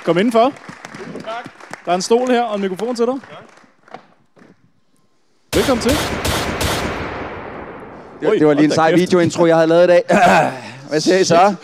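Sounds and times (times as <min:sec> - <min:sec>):
speech: 0:00.0 - 0:03.5, 0:05.6 - 0:06.2, 0:08.2 - 0:11.6
laughter: 0:01.2 - 0:02.2, 0:09.3 - 0:11.6
machine gun fire sound effect: 0:05.5 - 0:08.6.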